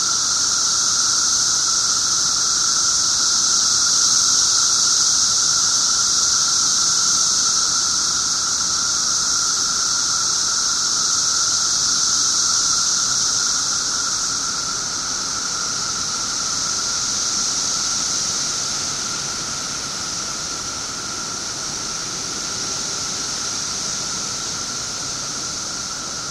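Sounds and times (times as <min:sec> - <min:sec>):
17-year cicada Brood XIII in Glenview IL: 0:00.0 - 0:26.2.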